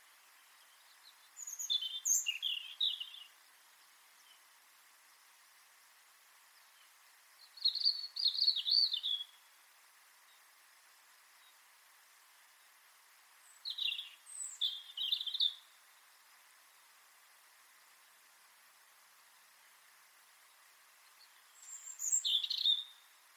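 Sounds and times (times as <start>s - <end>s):
European robin singing: 0.0s - 3.4s, 6.6s - 9.5s, 13.4s - 15.8s, 21.1s - 23.1s.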